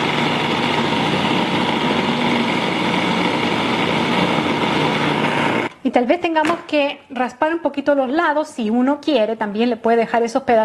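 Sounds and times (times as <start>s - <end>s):
food processor blending strawberries: 0.0s - 5.7s
speech: 6.0s - 10.6s.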